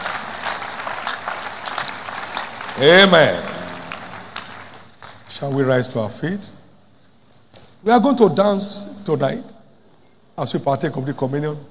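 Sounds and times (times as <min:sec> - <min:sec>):
church congregation applauding: 0:00.0 - 0:05.7
speech: 0:02.8 - 0:03.5, 0:05.4 - 0:06.5, 0:07.8 - 0:09.5, 0:10.4 - 0:11.6.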